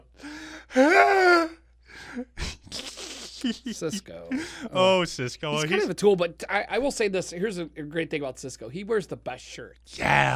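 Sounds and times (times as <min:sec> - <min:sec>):
softer breathy gasps: 0:00.1 - 0:01.2, 0:04.3 - 0:04.8
person imitating a cheesy scream: 0:00.8 - 0:01.6, 0:10.0 - 0:10.3
speech: 0:03.4 - 0:10.3.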